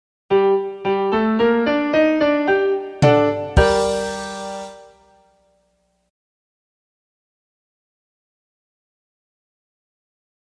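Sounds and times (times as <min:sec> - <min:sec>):
establishing musical phrase in G minor: 0:00.4 - 0:05.3.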